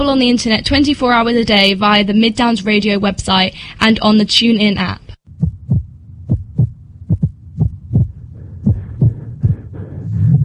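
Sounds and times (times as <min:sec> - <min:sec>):
speech: 0:00.1 - 0:05.0
irregular heartbeat: 0:05.3 - 0:10.4.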